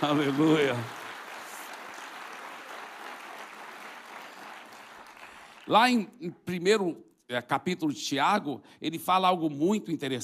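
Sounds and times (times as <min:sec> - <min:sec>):
speech: 0:00.0 - 0:01.0, 0:05.7 - 0:10.2
audience applause: 0:00.0 - 0:05.8.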